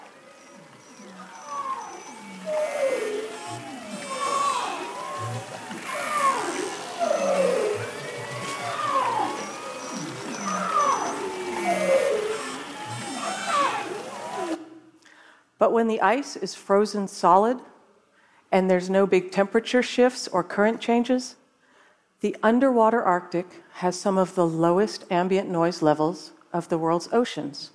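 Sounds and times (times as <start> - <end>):
underwater calls of Arctic marine mammals in spring: 0.0 - 14.6
speech: 15.6 - 17.7, 18.5 - 21.4, 22.2 - 27.7.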